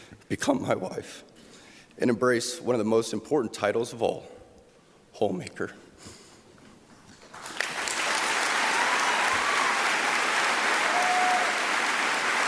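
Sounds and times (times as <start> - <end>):
speech: 0.3 - 1.3, 2.0 - 4.4, 5.2 - 6.2
audience applause: 7.3 - 12.4.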